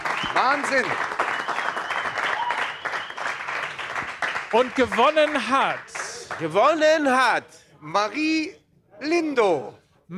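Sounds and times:
audience applause: 0:00.0 - 0:06.8
speech: 0:00.3 - 0:01.2, 0:04.5 - 0:10.1.

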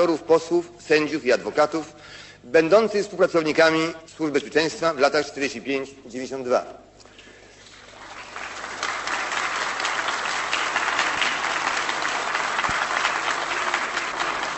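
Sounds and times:
speech: 0:00.0 - 0:06.8
crowd clapping: 0:07.6 - 0:14.5.

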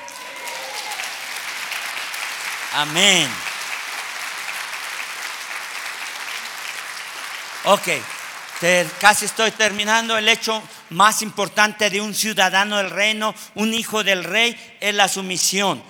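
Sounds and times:
audience applause: 0:00.0 - 0:10.4
speech: 0:02.8 - 0:03.5, 0:07.6 - 0:15.8.

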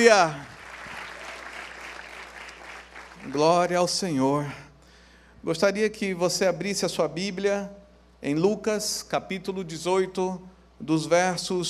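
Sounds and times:
speech: 0:00.0 - 0:00.5, 0:03.2 - 0:04.6, 0:05.4 - 0:11.6
audience applause: 0:00.0 - 0:03.4.

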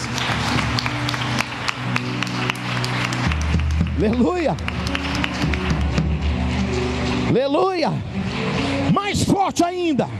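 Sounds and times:
audience applauding loudly: 0:00.0 - 0:06.3
low musical drone: 0:00.0 - 0:10.1
speech: 0:04.0 - 0:05.6, 0:07.3 - 0:10.1.

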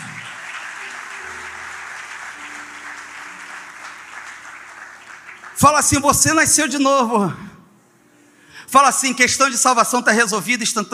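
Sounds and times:
audience applauding: 0:00.0 - 0:06.4
speech: 0:05.6 - 0:07.5, 0:08.7 - 0:10.9.

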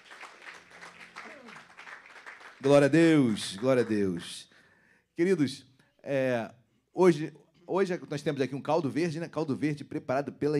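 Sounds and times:
audience applause: 0:00.0 - 0:04.4
speech: 0:02.6 - 0:04.5, 0:05.2 - 0:10.5.

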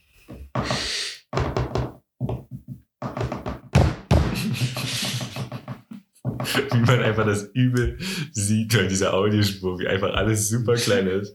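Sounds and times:
knuckles rapping Morse code on a tabletop: 0:01.4 - 0:07.0
laughter: 0:04.2 - 0:07.5
speech: 0:06.6 - 0:11.3.

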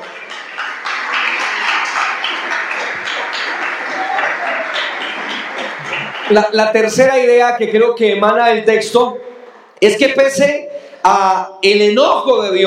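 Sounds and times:
murmur of voices: 0:00.0 - 0:06.4
audience applause: 0:00.0 - 0:07.0
speech: 0:06.3 - 0:12.6.

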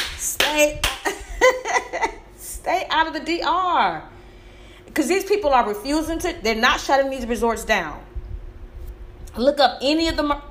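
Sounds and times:
person clapping hands: 0:00.0 - 0:01.2
speech: 0:00.6 - 0:00.8, 0:02.7 - 0:04.2, 0:05.0 - 0:08.1, 0:09.4 - 0:10.5.

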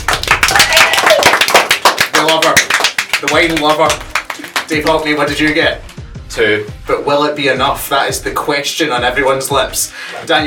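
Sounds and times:
small group applauding: 0:00.0 - 0:05.4
speech: 0:03.2 - 0:04.0, 0:04.7 - 0:10.4.

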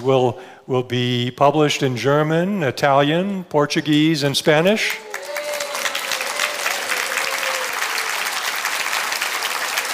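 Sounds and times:
speech: 0:00.0 - 0:05.1
applause and cheers from a large audience at a spiritual convocation: 0:04.9 - 0:09.9.

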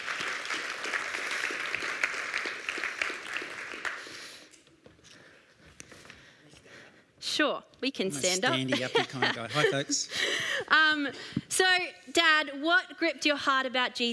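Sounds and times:
audience clapping: 0:00.0 - 0:04.5
speech: 0:07.4 - 0:14.1
laughter: 0:08.2 - 0:10.6.

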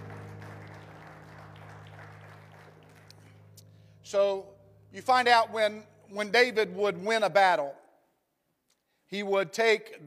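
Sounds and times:
audience applause: 0:00.0 - 0:03.6
speech: 0:04.1 - 0:07.8, 0:09.1 - 0:10.0.

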